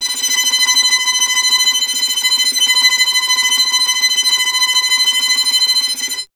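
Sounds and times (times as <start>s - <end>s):
violin tremolo: 0.0s - 6.3s.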